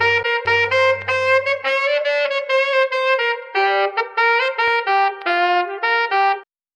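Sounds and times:
saxophone: 0.0 - 6.5.

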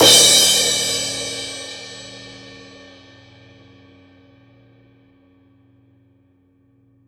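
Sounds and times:
cymbals: 0.0 - 3.9.

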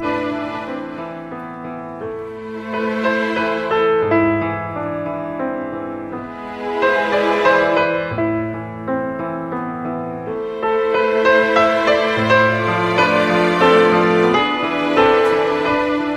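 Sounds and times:
sad piano: 0.0 - 16.1.

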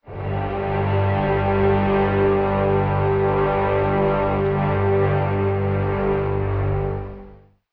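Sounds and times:
sustained strings: 0.0 - 7.4.

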